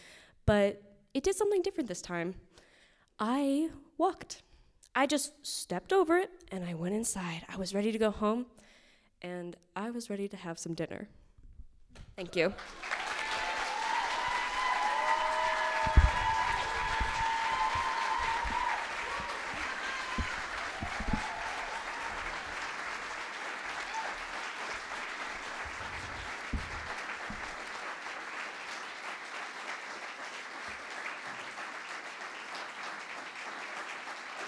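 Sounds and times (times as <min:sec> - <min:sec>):
speech: 0:00.5 - 0:02.6, 0:03.2 - 0:08.6, 0:09.2 - 0:11.2, 0:11.9 - 0:12.9
audience applause: 0:12.5 - 0:34.4
faint cheering: 0:12.6 - 0:28.2.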